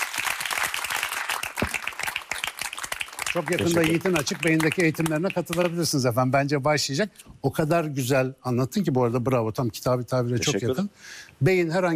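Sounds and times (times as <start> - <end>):
audience applause: 0.0 - 5.7
speech: 3.3 - 11.9.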